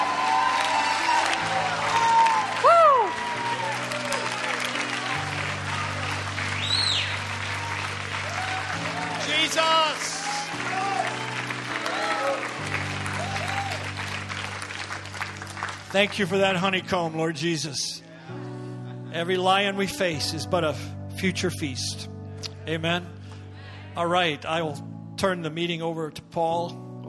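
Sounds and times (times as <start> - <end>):
people shouting and whooping: 0.0 - 4.6, 5.8 - 12.5, 13.1 - 13.9
audience applauding: 0.0 - 16.8
sustained low organ chords: 0.0 - 27.0
speech: 16.0 - 18.4, 19.2 - 23.2, 24.0 - 27.0.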